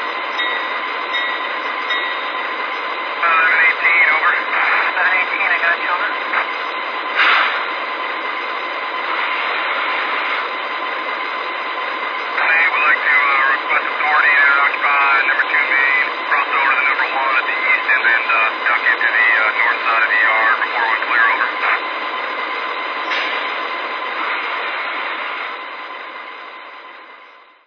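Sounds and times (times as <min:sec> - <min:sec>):
ES44AC locomotive generator: 0:00.0 - 0:27.6.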